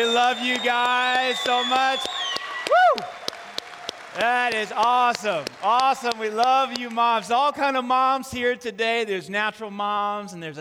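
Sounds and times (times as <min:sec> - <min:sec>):
person whooping: 0:00.0 - 0:03.2
speech: 0:00.0 - 0:03.2, 0:04.2 - 0:10.6
audience applause: 0:00.0 - 0:07.5.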